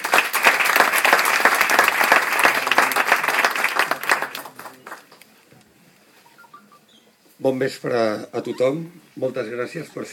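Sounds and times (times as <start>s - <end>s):
audience applause: 0.0s - 5.2s
speech: 7.4s - 10.1s.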